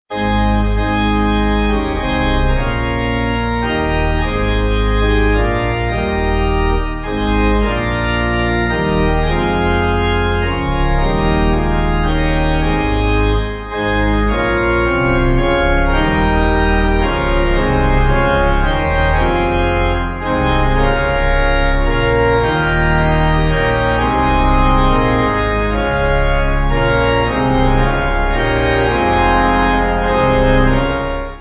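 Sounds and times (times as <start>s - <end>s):
church pipe organ backing music: 0.1s - 31.4s.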